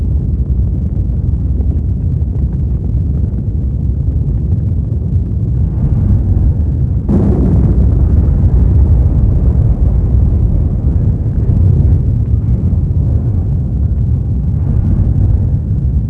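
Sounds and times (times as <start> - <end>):
rumbling flames: 0.0 - 16.0
explosions: 3.8 - 16.0.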